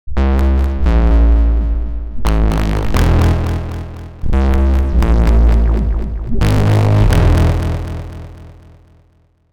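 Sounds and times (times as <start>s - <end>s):
wobbling sound: 0.6s - 8.0s.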